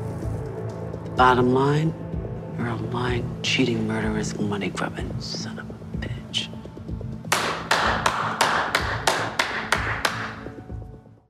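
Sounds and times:
speech: 1.2 - 6.5
hand clapping: 7.2 - 10.7.

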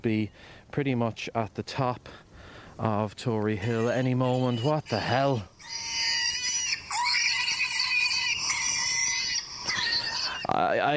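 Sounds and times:
speech: 0.0 - 5.9, 10.5 - 10.9
startled wild boar piglet squealing on a hillside boar trail: 3.6 - 10.6.

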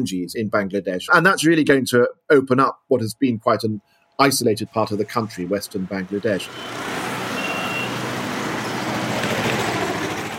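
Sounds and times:
speech: 0.0 - 6.9
congested city traffic of trucks and buses rumbling: 4.3 - 10.3
high electronic beep: 7.4 - 8.0.

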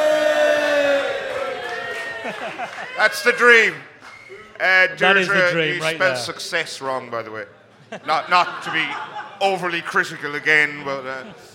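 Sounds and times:
audience cheering: 0.0 - 6.1
laughter: 1.9 - 3.3, 7.7 - 11.5
speech: 2.5 - 11.5.

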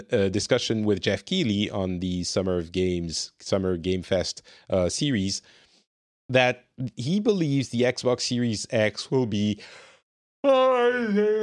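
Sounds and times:
speech: 0.0 - 5.6, 6.3 - 11.4
person yawning: 10.4 - 11.4.

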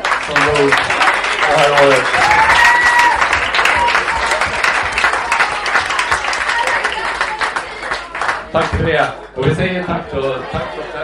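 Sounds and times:
audience applause: 0.0 - 8.8
speech: 0.3 - 1.0, 1.8 - 2.4, 8.8 - 11.0.

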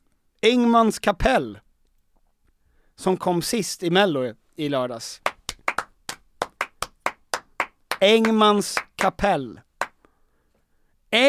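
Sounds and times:
speech: 0.4 - 1.6, 3.0 - 5.3, 8.0 - 9.7
audience applause: 5.4 - 9.1.

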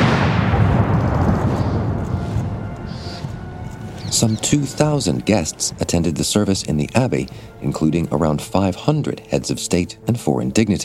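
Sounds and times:
ceremonial gun salute fired from Hyde Park: 0.0 - 5.8
speech: 4.2 - 10.8.

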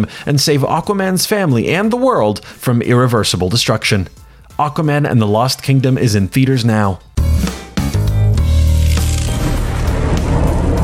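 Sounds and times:
speech: 0.0 - 7.6
lightning round stinger sound effect: 8.4 - 10.8.

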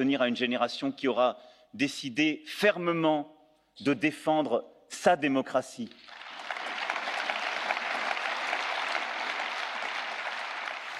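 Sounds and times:
speech: 0.0 - 6.2
standing ovation applause in parliament: 6.0 - 10.9.

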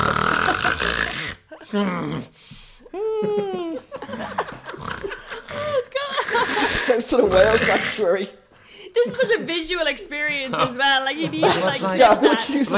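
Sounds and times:
person imitating irregular snoring with snorts: 0.0 - 2.4, 4.7 - 8.1
speech: 1.7 - 4.5, 6.7 - 8.4, 9.0 - 12.7
laughter: 2.9 - 8.2, 8.9 - 12.7.

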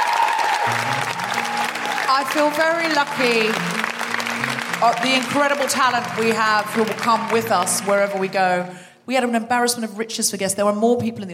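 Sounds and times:
audience applause: 0.0 - 8.7
speech: 2.1 - 3.8, 4.8 - 11.3.

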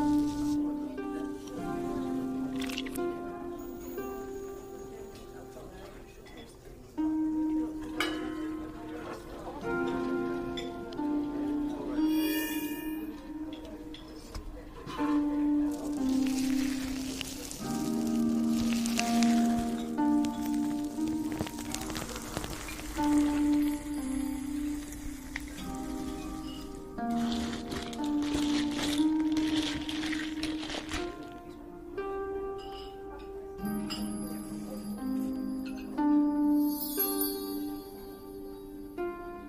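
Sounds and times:
slow melody of long held notes: 0.0 - 39.4
bright tinkling chimes: 12.0 - 13.6, 22.6 - 27.3, 33.7 - 39.0
glassy clinks: 12.1 - 13.3, 33.7 - 36.0, 36.6 - 38.8
light rain patter: 15.8 - 31.0.

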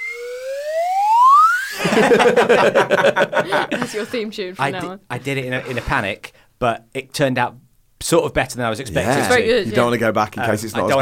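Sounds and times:
swanee whistle sound effect sliding up: 0.0 - 1.8
laughter: 1.8 - 5.0
speech: 1.9 - 11.0.

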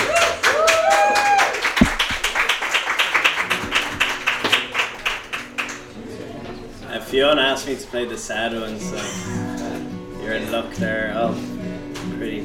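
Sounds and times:
audience applause: 0.0 - 5.9
speech: 7.2 - 9.5, 10.3 - 11.5, 12.2 - 12.4.

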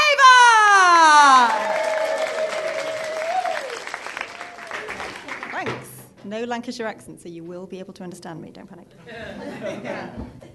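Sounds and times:
long held shout: 0.0 - 3.8
audience cheering and whooping: 0.3 - 5.1
audience applause: 1.3 - 5.7
speech: 6.3 - 10.5
laughter: 9.0 - 10.4.

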